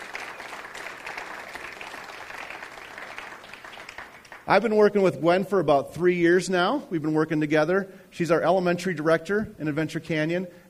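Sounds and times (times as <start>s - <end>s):
round of applause: 0.0s - 4.6s
speech: 4.5s - 10.6s.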